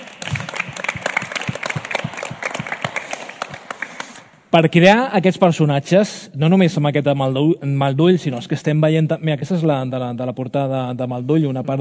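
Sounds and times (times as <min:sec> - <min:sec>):
applause: 0:00.0 - 0:04.3
speech: 0:04.5 - 0:11.7.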